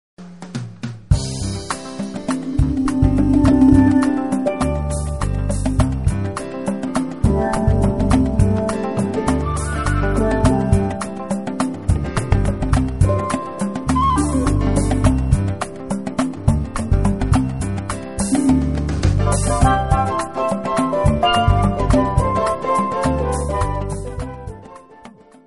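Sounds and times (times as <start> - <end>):
blues music: 1.2 - 25.3.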